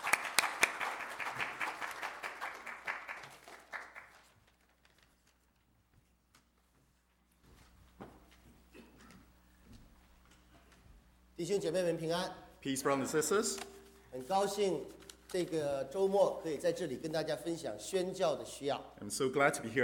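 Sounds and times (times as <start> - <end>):
church congregation clapping to welcome a visiting reverend: 0.0 - 5.0
speech: 11.4 - 19.8.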